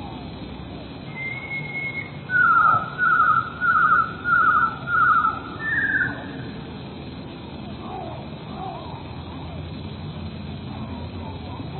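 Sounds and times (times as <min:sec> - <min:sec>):
low rumbling background noise: 0:00.0 - 0:11.7
Eurasian blue tit song: 0:01.1 - 0:06.7.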